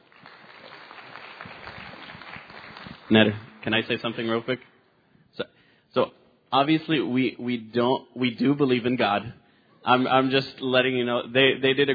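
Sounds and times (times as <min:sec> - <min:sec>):
quiet audience applause after a debate: 0:00.0 - 0:04.6
speech: 0:03.1 - 0:04.7, 0:05.4 - 0:11.9.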